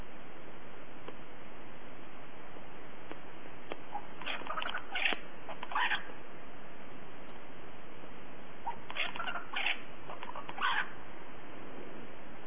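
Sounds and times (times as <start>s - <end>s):
birds at a lagoon: 3.7s - 6.2s, 8.6s - 11.0s.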